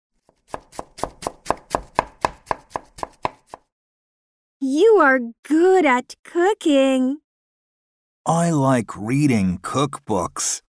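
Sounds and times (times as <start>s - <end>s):
knife chopping food on a board in a home kitchen: 0.2s - 3.7s
speech: 4.6s - 7.2s, 8.2s - 10.6s.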